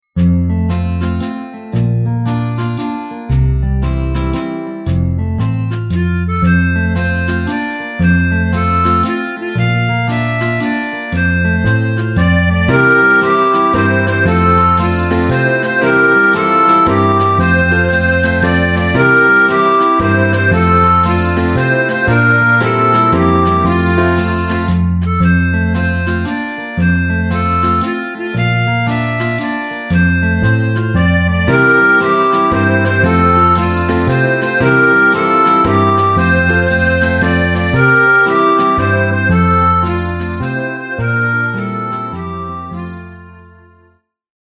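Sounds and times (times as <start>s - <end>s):
German folk song melody in F: 0.2s - 44.0s.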